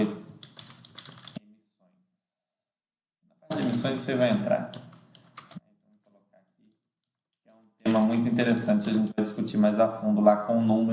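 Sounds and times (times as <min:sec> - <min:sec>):
speech: 0:00.0 - 0:00.2, 0:03.7 - 0:04.8, 0:07.9 - 0:10.9
keyboard typing as a note is written: 0:00.3 - 0:01.4, 0:03.5 - 0:05.6.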